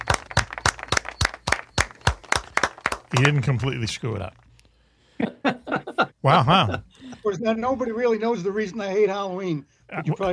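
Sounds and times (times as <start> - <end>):
audience clapping: 0.0 - 4.3
speech: 3.1 - 4.4, 6.2 - 10.3
laughter: 5.2 - 7.2.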